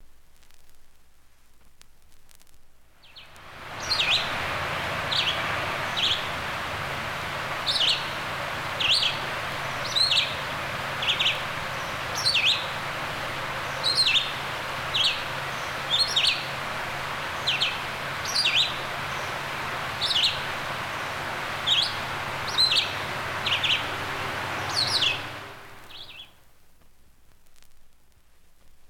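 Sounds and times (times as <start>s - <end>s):
low steady hum: 0.0s - 28.8s
bird chirps: 3.0s - 4.3s, 5.1s - 6.3s, 7.6s - 8.2s, 8.8s - 12.8s, 13.7s - 16.5s, 17.3s - 19.4s, 20.0s - 20.5s, 21.6s - 26.4s.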